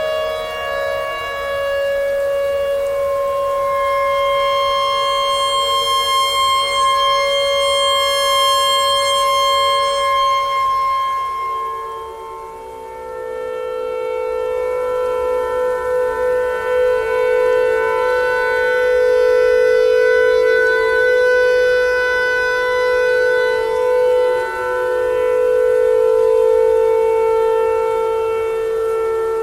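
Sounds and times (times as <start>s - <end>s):
clarinet notes: 0.0s - 13.7s
tornado siren: 0.0s - 29.4s.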